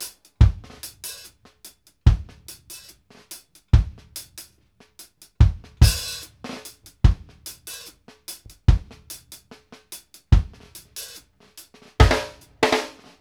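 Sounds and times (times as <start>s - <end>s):
reggae kick drum: 0.0s - 1.2s, 2.1s - 2.9s, 3.7s - 4.2s, 5.3s - 9.3s, 10.3s - 10.8s, 12.0s - 13.1s.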